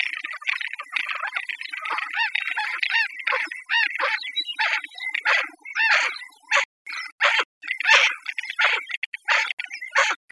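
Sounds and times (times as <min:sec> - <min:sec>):
birds harsh chattering: 0:00.0 - 0:10.3.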